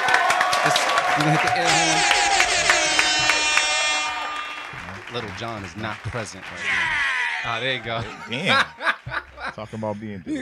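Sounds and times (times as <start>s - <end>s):
audience applause: 0.0s - 9.7s
speech: 0.6s - 2.3s, 5.1s - 8.9s, 9.6s - 10.3s
laughter: 4.8s - 10.3s.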